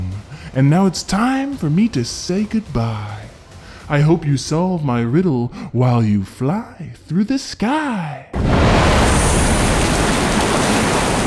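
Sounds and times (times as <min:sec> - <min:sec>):
speech: 0:00.5 - 0:03.2, 0:03.9 - 0:08.5
whale blowhole blast: 0:08.4 - 0:11.2.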